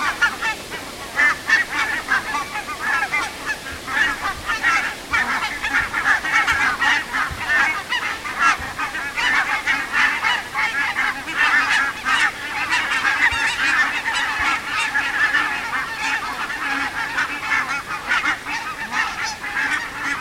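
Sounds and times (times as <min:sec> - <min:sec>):
barnacle geese honking as a flock: 0:00.0 - 0:20.1.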